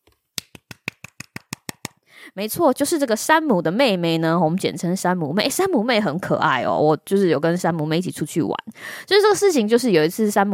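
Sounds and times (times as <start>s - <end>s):
hand clapping: 0.1s - 2.0s
speech: 2.3s - 10.5s.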